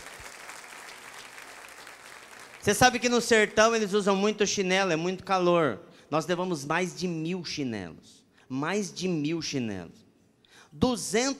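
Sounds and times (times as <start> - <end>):
audience applause: 0.0 - 2.7
speech: 2.6 - 10.0, 10.7 - 11.3.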